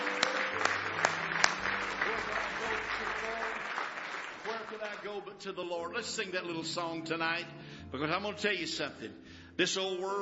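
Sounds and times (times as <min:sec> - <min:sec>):
audience clapping hands in praise: 0:00.0 - 0:05.4
speech: 0:05.4 - 0:10.1.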